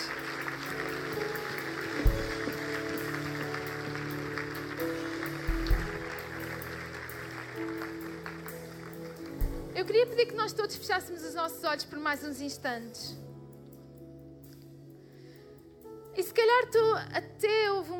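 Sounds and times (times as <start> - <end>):
audience applause: 0.0 - 9.5
speech: 9.9 - 13.2, 16.7 - 17.9.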